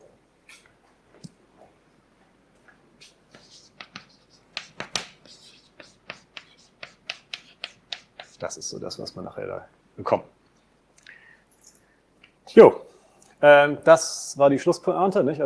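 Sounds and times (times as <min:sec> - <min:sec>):
scratchy handwriting strokes: 0:03.0 - 0:09.3
speech: 0:08.5 - 0:10.4, 0:12.6 - 0:12.8, 0:13.4 - 0:15.4.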